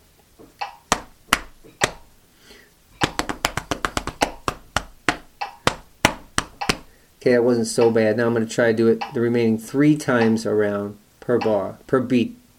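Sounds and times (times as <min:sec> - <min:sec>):
hands clapping a rhythm: 0:00.6 - 0:02.1, 0:03.0 - 0:07.0
speech: 0:07.2 - 0:12.4.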